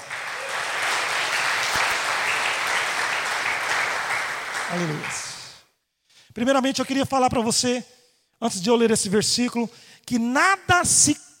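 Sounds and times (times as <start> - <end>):
audience applause: 0.0 - 5.6
speech: 4.7 - 5.3, 6.4 - 11.3.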